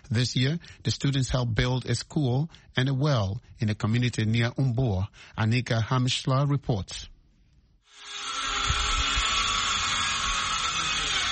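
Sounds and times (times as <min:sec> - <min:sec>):
speech: 0:00.1 - 0:07.1
power drills roaring in the village of Gidmakta: 0:07.9 - 0:11.3.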